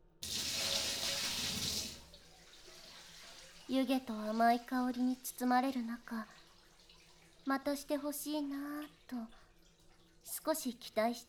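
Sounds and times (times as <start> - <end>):
hot water poured over a head: 0.2 - 10.5
speech: 3.7 - 6.4, 7.4 - 9.4, 10.3 - 11.2.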